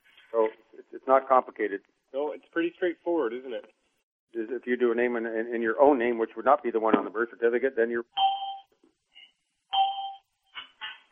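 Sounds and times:
speech: 0.3s - 8.3s
beeps on the phone line: 8.2s - 8.7s, 9.7s - 10.3s.

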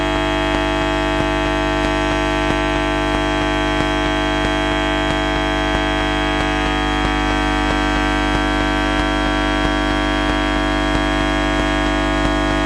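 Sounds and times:
electromagnetic noise at a train station: 0.0s - 12.6s.

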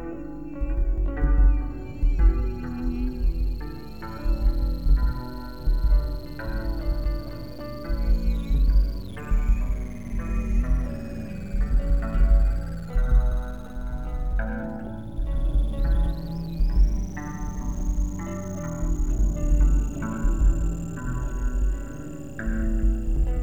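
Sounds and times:
bass noise: 0.8s - 23.4s.

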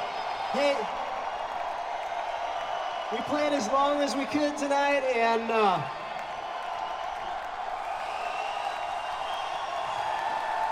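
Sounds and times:
concert audience cheering and applauding: 0.0s - 10.7s
speech: 0.5s - 1.0s, 3.1s - 6.0s.

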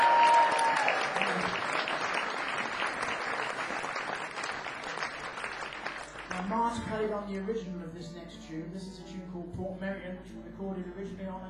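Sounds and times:
audience applause: 0.0s - 6.5s
speech: 6.7s - 11.4s.

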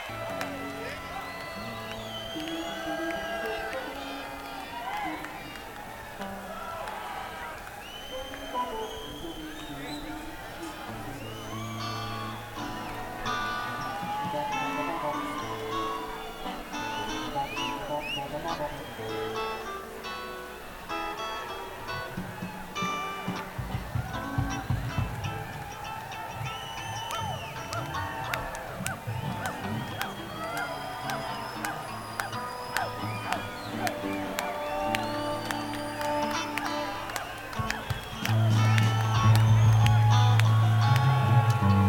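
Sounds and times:
crowd noise: 0.0s - 41.8s.

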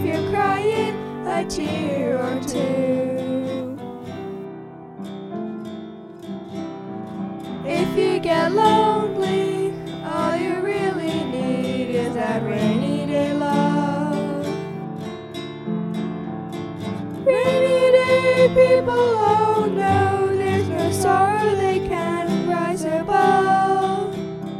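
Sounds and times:
person singing: 0.0s - 4.4s, 7.6s - 14.9s, 17.2s - 24.2s
guitar: 0.0s - 24.5s
piano: 0.0s - 24.5s.

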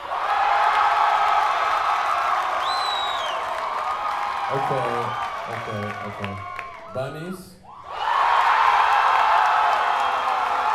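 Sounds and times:
audience cheering and applauding: 0.0s - 7.1s, 7.8s - 10.7s
rising whistle: 2.6s - 3.5s
speech: 4.5s - 8.0s.

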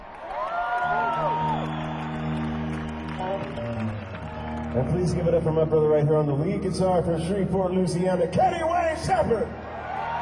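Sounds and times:
audience cheering with a whoop: 0.0s - 5.6s, 9.3s - 10.1s
audience applause: 0.0s - 6.0s, 9.7s - 10.1s
speech: 4.8s - 9.6s.

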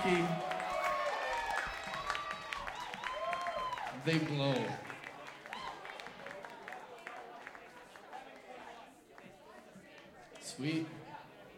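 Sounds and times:
speech: 0.0s - 0.5s, 4.0s - 4.9s, 10.6s - 11.0s
whoops and voices: 0.0s - 4.0s
audience clapping: 0.0s - 10.4s.

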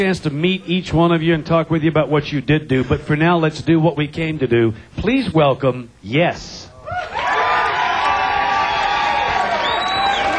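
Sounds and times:
speech: 0.0s - 7.2s
audience cheering in a standing ovation at a live show: 6.8s - 10.3s
audience whistles: 9.5s - 10.3s.

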